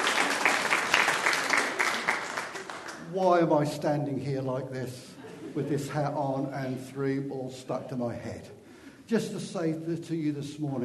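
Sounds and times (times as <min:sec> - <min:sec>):
round of applause: 0:00.0 - 0:03.2
speech: 0:03.2 - 0:10.8.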